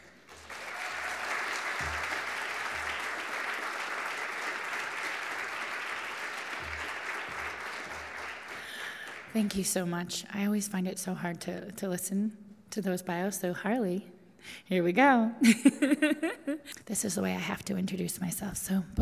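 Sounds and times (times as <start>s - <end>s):
large audience applauding: 0.0s - 9.7s
speech: 9.4s - 19.0s
laughter: 15.4s - 16.7s.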